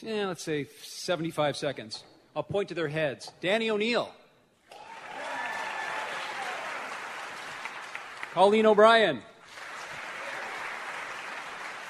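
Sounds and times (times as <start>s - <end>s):
speech: 0.0s - 4.2s, 8.4s - 9.3s
audience clapping at a live show: 4.7s - 11.8s.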